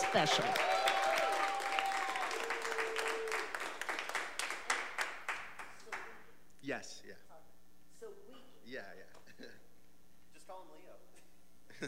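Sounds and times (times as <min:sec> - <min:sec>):
audience applause on a live radio show: 0:00.0 - 0:06.0
speech: 0:00.1 - 0:00.8.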